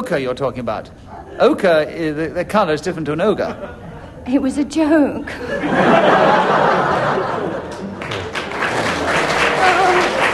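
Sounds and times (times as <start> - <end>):
speech: 0.0 - 7.4
laughter: 3.4 - 4.2, 5.3 - 10.3
audience applause: 5.9 - 10.3.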